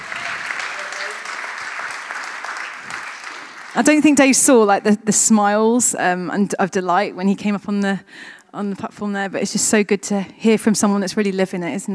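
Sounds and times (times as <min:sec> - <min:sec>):
audience applause: 0:00.0 - 0:04.0
speech: 0:03.8 - 0:11.9.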